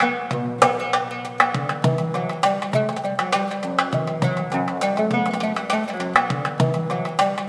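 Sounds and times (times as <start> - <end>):
doumbek drum percussion: 0.0 - 7.4
oud: 0.0 - 7.4.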